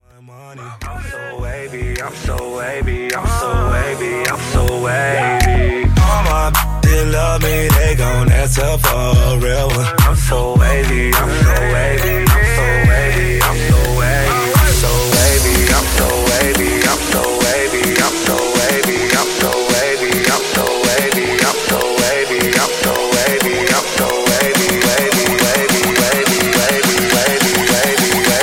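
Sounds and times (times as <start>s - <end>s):
twerk music: 0.6s - 28.4s.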